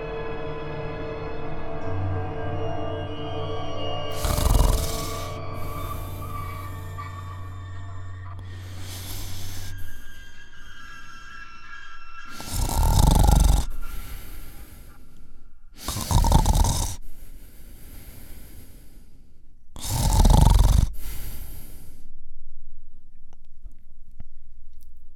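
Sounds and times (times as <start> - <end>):
loud snoring: 4.1 - 7.5, 8.4 - 10.1, 12.3 - 14.9, 15.8 - 17.2, 19.8 - 22.0.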